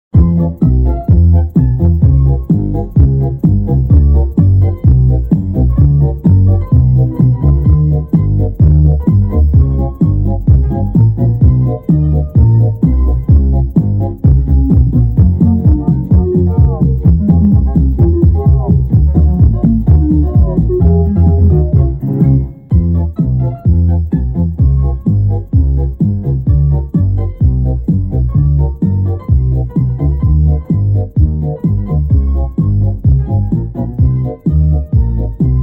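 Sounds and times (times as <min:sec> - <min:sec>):
bass: 0:00.0 - 0:35.6.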